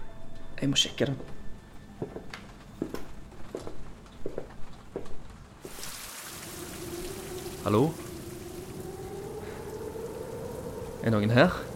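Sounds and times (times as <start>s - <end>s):
speech: 0.6s - 1.4s, 7.7s - 8.0s, 11.0s - 11.7s
heavy rain: 5.6s - 11.7s
faint low drone: 6.2s - 11.7s.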